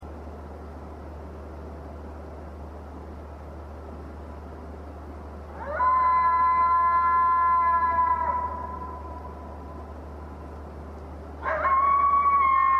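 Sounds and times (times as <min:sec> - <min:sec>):
lone coyote howling: 0:05.6 - 0:09.6, 0:11.4 - 0:12.7.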